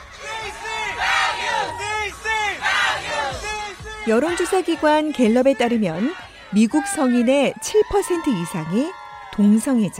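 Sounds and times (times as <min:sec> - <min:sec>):
large parade crowd chanting slogans: 0:00.0 - 0:07.3
general crowd noise: 0:00.0 - 0:09.9
speech: 0:04.0 - 0:09.9.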